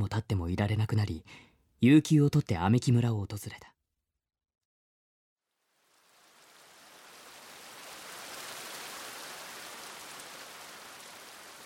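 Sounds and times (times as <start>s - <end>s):
speech: 0.0s - 3.7s
steady rain falling: 5.5s - 11.6s.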